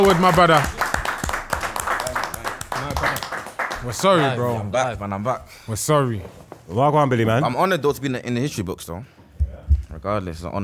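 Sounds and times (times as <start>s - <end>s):
speech: 0.0s - 0.8s, 3.8s - 9.2s, 9.9s - 10.6s
scattered claps for a player walking onto the pitch: 0.0s - 4.4s.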